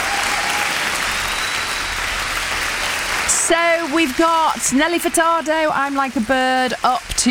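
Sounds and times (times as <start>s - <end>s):
applause: 0.0s - 5.3s
speech: 3.5s - 7.2s.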